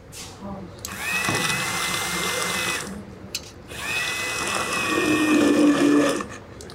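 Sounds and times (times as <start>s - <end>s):
handheld blender pureeing cooked beans: 0.9s - 3.0s, 3.7s - 6.4s.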